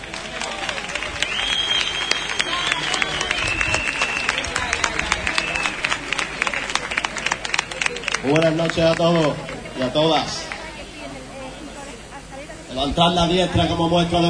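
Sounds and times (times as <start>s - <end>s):
cheering: 0.0s - 9.4s
crowd clapping: 0.0s - 10.8s
shrill whistles: 1.2s - 5.8s
speech: 8.2s - 10.5s, 12.8s - 14.2s.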